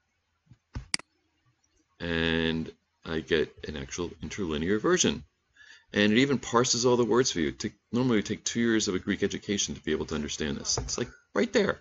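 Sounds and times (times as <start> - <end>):
computer mouse clicks: 0.5 - 1.1
speech: 2.0 - 5.3, 5.9 - 11.7.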